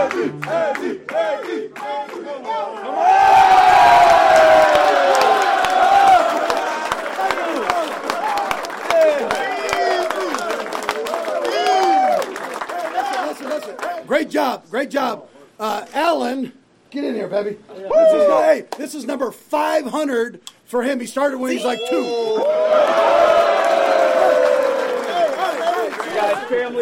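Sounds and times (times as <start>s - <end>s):
football stadium crowd cheering: 0.0s - 14.1s, 21.5s - 26.8s
speech: 0.1s - 3.1s, 14.4s - 23.5s.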